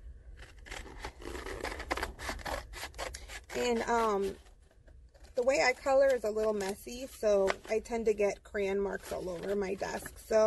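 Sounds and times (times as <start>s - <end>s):
scissors cutting out a paper craft tail piece: 0.4s - 4.4s, 5.2s - 7.8s, 8.9s - 10.1s
speech: 3.6s - 4.4s, 5.4s - 10.4s.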